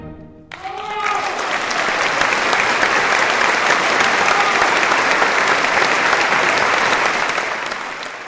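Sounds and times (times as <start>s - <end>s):
standing ovation applause after concert: 0.5s - 8.2s.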